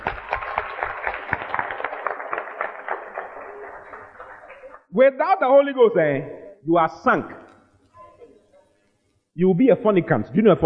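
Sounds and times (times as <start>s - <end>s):
audience clapping: 0.0s - 4.9s
speech: 5.0s - 7.4s, 9.4s - 10.6s.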